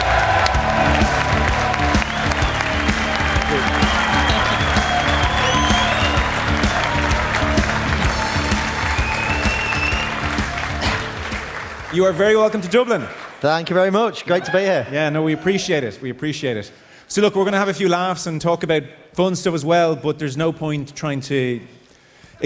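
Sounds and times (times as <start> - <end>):
live audience applause in Dublin: 0.0 - 13.9
speech: 12.0 - 21.8.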